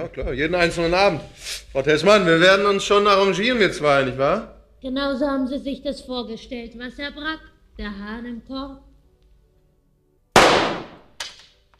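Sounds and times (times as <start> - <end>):
speech: 0.0 - 8.9
pistol shots: 10.4 - 11.4.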